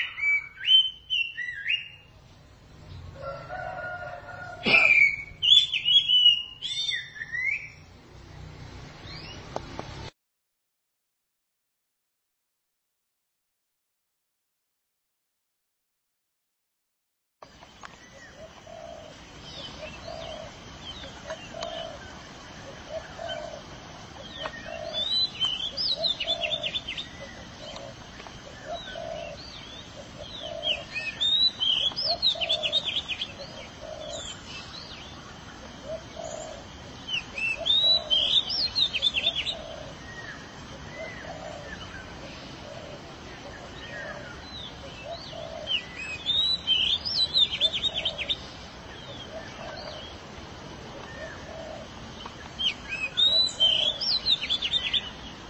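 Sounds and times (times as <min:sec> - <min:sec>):
canary song: 0:00.0 - 0:09.8, 0:17.4 - 0:55.4.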